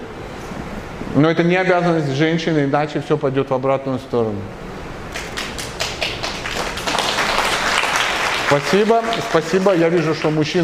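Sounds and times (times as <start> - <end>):
speech: 1.2 - 4.6, 8.5 - 10.6
audience clapping at a talk in Odesa: 5.1 - 10.6.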